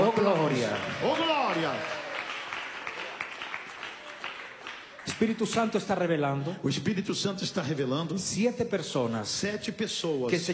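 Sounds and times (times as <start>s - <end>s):
faint church congregation applause during worship: 0.0s - 6.2s
speech: 5.2s - 10.5s.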